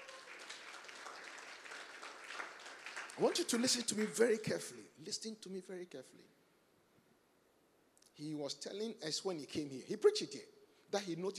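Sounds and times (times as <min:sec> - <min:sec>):
audience hand clapping: 0:00.0 - 0:04.5
speech: 0:03.2 - 0:06.4, 0:08.2 - 0:11.3.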